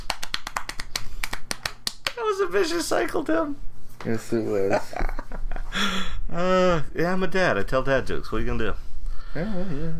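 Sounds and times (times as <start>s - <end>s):
hand clapping: 0.0s - 2.2s
speech: 2.2s - 5.1s, 5.8s - 9.9s
laughter: 4.6s - 6.5s.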